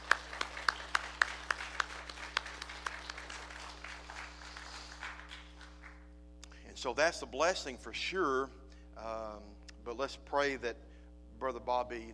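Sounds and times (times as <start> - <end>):
audience applause: 0.0 - 6.0
speech: 6.8 - 12.1.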